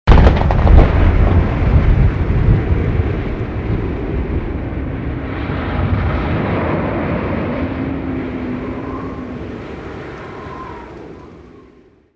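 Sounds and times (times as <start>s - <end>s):
thunder: 0.1s - 11.6s.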